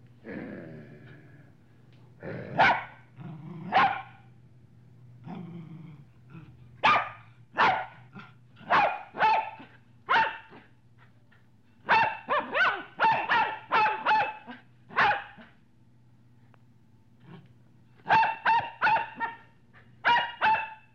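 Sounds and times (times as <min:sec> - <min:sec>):
medium-sized dog barking: 0:02.6 - 0:03.0, 0:03.7 - 0:04.2, 0:06.8 - 0:10.7, 0:11.8 - 0:15.5, 0:18.0 - 0:20.9.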